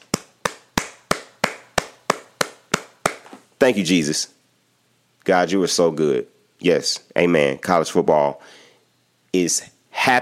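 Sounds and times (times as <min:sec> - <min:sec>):
sharp hand claps: 0:00.0 - 0:03.4
speech: 0:03.6 - 0:04.4, 0:05.3 - 0:08.6, 0:09.3 - 0:10.2.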